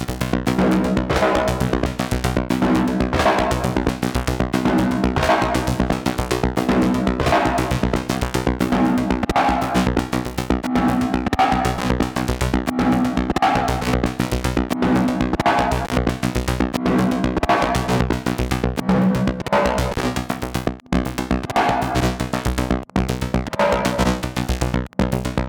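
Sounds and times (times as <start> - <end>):
Karplus-Strong plucked string synthesis: 0.0 - 24.6.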